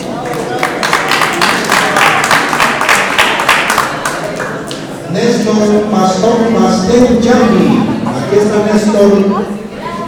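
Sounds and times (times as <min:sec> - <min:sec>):
audience applause: 0:00.2 - 0:04.6
speech: 0:05.2 - 0:09.5.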